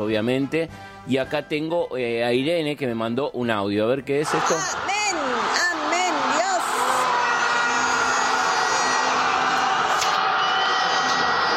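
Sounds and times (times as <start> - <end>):
speech: 0.0 - 5.6
crowd cheering a goal: 4.2 - 11.5.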